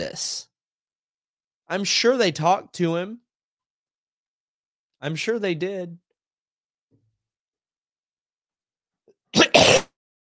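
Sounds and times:
speech: 0:00.0 - 0:00.5, 0:01.7 - 0:03.2, 0:05.0 - 0:06.0
person coughing: 0:09.4 - 0:09.9.

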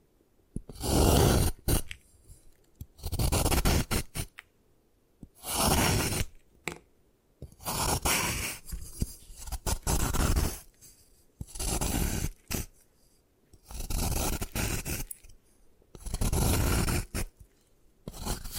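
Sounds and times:
gym chalk crushed and scraped: 0:00.6 - 0:04.4, 0:05.4 - 0:06.4, 0:07.5 - 0:12.9, 0:13.6 - 0:15.4, 0:16.0 - 0:18.5.

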